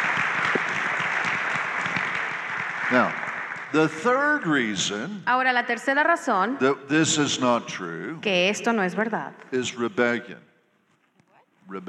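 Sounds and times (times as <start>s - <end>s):
crowd applauding: 0.0s - 5.1s
speech: 2.9s - 10.5s, 11.7s - 11.8s.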